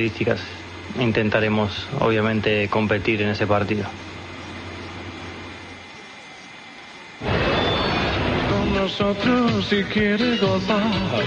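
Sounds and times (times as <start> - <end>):
speech: 0.0 - 4.2, 9.1 - 11.2
airplane sound effect: 7.2 - 10.0.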